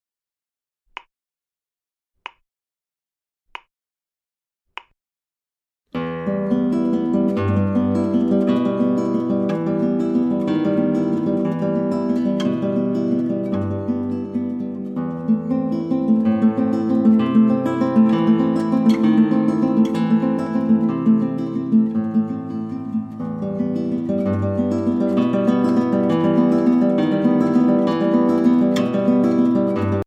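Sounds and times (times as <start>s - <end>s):
classical guitar etude in E minor: 6.0s - 30.0s.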